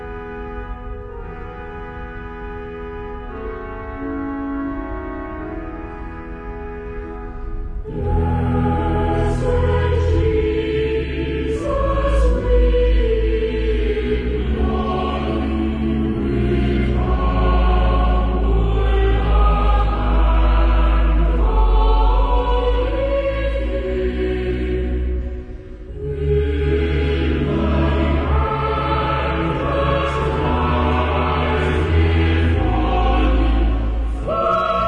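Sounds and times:
cathedral choir singing: 7.8 - 34.8.

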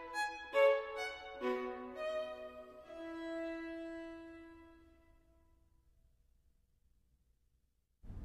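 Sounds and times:
violin: 0.0 - 5.4.

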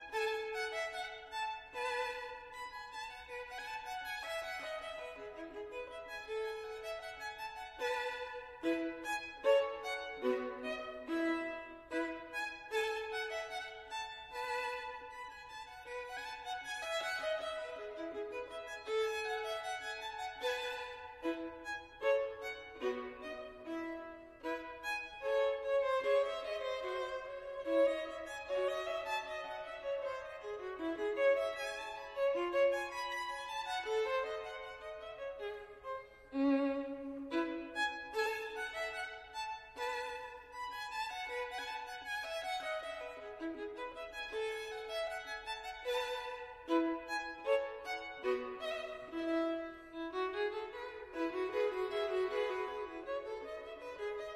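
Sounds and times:
violin: 0.0 - 54.3.

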